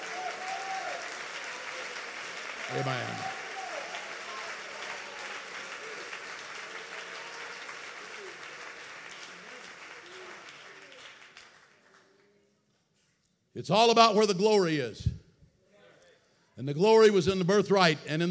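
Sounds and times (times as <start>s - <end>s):
audience clapping: 0.0s - 13.2s
speech: 2.7s - 3.4s, 13.6s - 15.2s, 16.6s - 18.2s.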